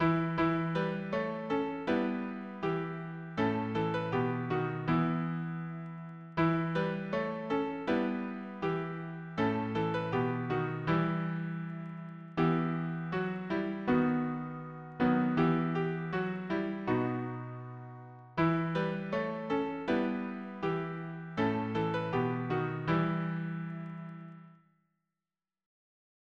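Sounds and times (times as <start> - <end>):
piano harmony: 0.0 - 24.6.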